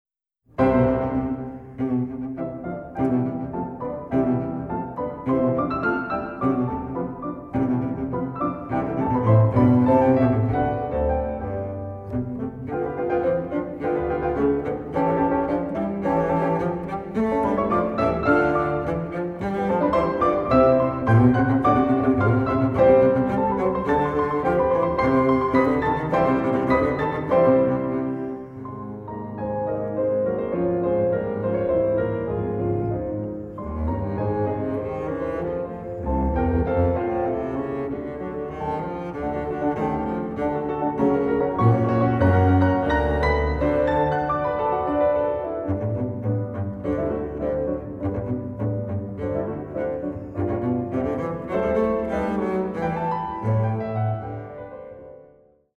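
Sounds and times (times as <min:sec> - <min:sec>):
sonata allegro in B flat: 0:00.4 - 0:55.7.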